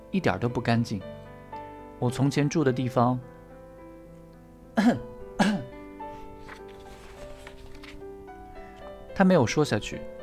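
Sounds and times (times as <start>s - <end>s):
speech: 0.1s - 1.2s, 2.0s - 3.3s, 4.8s - 5.1s, 9.2s - 10.1s
person feigning a cough: 4.8s - 5.7s.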